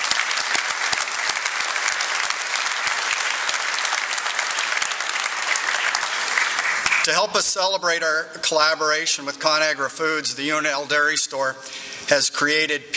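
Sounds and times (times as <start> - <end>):
round of applause: 0.0 - 7.5
speech: 7.1 - 12.9.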